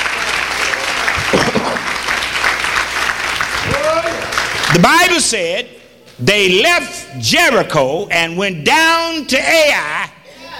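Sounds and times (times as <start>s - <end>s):
audience clapping: 0.0s - 5.2s
speech: 4.7s - 10.1s.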